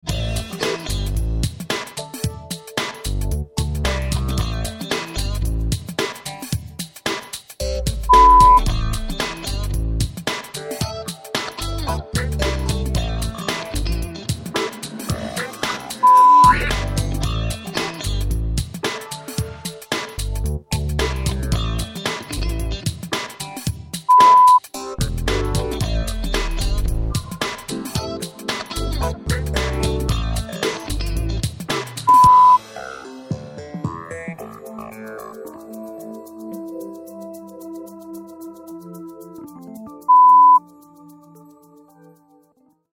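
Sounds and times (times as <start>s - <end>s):
groove music: 0.2s - 41.8s.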